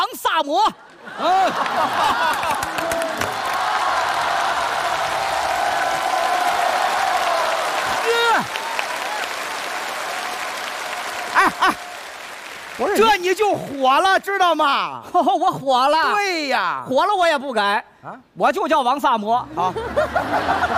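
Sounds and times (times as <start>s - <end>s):
speech: 0.0s - 3.2s, 12.8s - 20.7s
laughter: 0.8s - 3.3s, 11.3s - 11.9s, 15.0s - 16.1s, 19.5s - 20.7s
audience applause and cheering: 0.8s - 14.4s.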